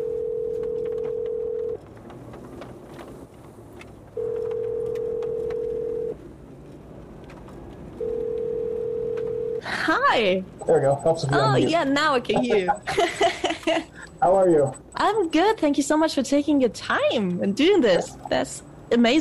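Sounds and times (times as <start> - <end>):
phone call ringing tone: 0.0 - 1.8, 4.2 - 6.2, 8.0 - 9.6
speech: 10.1 - 19.1
laughter: 12.2 - 14.1.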